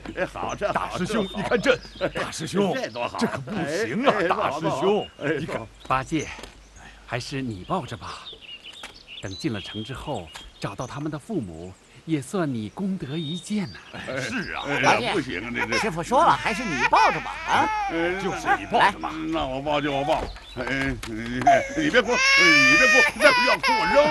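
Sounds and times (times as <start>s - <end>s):
laughter: 0.0s - 5.7s, 13.8s - 24.0s
voices talking: 0.0s - 8.4s, 9.2s - 24.0s
baby crying: 14.5s - 19.1s, 21.4s - 24.0s.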